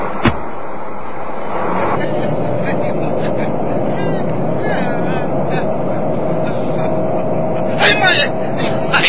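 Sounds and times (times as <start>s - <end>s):
car engine rumble as a car pulls away: 0.0s - 9.0s
voices talking: 1.4s - 9.0s
laughter: 1.6s - 9.0s.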